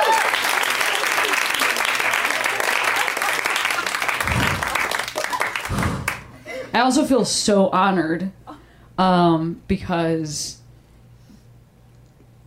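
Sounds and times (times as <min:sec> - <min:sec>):
audience applause: 0:00.0 - 0:06.4
speech: 0:06.8 - 0:08.4, 0:09.0 - 0:10.6.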